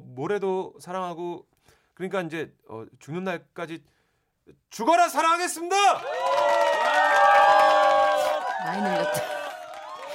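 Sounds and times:
speech: 0.2 - 7.2, 8.6 - 9.4
wedding guests cheering: 5.8 - 10.1.

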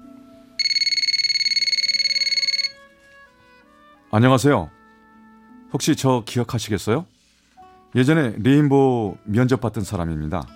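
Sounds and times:
telephone ringing: 0.6 - 2.9
speech: 4.1 - 4.8, 5.7 - 7.1, 7.9 - 10.5.

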